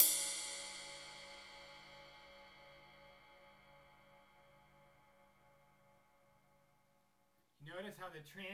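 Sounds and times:
cymbal played with brushes: 0:00.0 - 0:04.9.

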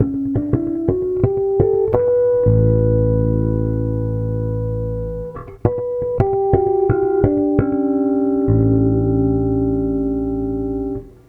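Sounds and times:
bass: 0:00.0 - 0:11.2.

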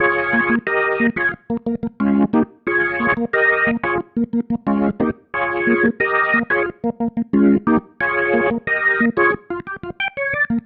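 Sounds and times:
organ pattern: 0:00.0 - 0:10.6.

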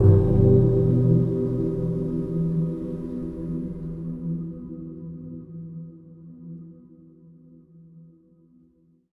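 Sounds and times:
gong: 0:00.0 - 0:04.4.

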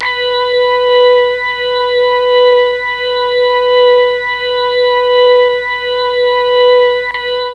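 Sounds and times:
Mellotron MKII organ: 0:00.0 - 0:07.5.

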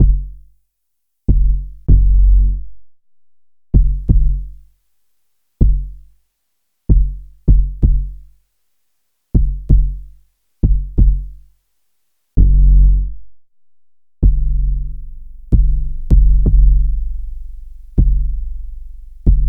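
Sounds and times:
bass: 0:00.0 - 0:00.6, 0:01.3 - 0:04.8, 0:05.6 - 0:06.2, 0:06.9 - 0:08.4, 0:09.3 - 0:11.5, 0:12.4 - 0:19.4.

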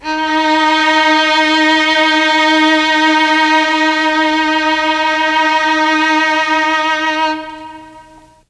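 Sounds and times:
Mellotron violins note: 0:00.0 - 0:08.4.

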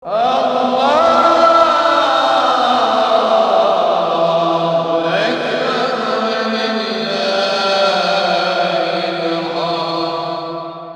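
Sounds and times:
prayer: 0:00.0 - 0:10.9.

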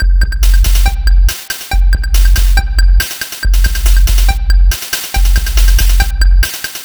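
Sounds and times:
lounge drum groove: 0:00.0 - 0:06.8.

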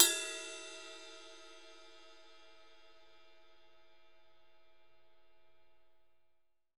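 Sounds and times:
ride cymbal: 0:00.0 - 0:01.9.

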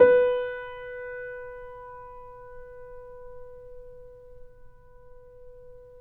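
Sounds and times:
soft grand piano note B3: 0:00.0 - 0:06.0.

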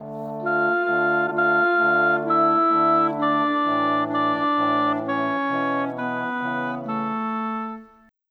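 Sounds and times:
orchestral brass and winds: 0:00.0 - 0:08.1.

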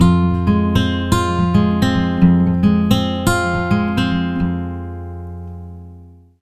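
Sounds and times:
acoustic guitar picking in F: 0:00.0 - 0:06.3.

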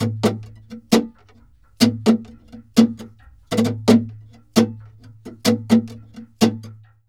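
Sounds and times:
flamenco guitar: 0:00.0 - 0:07.0.

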